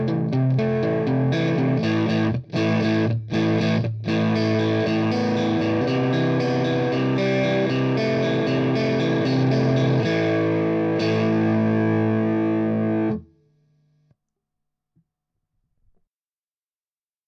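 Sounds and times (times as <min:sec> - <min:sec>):
distortion pedal effect loop: 0:00.0 - 0:13.3.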